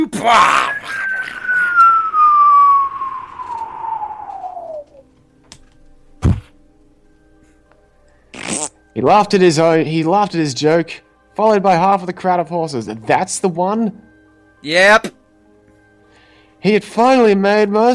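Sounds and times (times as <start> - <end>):
speech: 0.2 - 0.7, 9.1 - 14.1, 14.6 - 15.2, 16.6 - 17.9
descending whine: 0.6 - 5.1
bomb-drop sound effect: 0.7 - 5.0.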